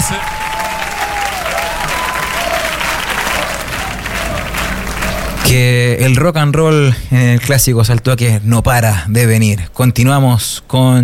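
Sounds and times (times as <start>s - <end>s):
audience applause: 0.0s - 5.9s
speech: 5.5s - 11.0s.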